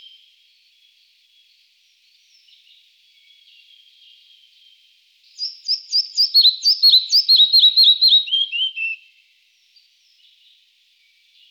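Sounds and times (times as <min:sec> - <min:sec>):
red-breasted flycatcher singing high notes and slurred whistles: 0:05.4 - 0:09.0.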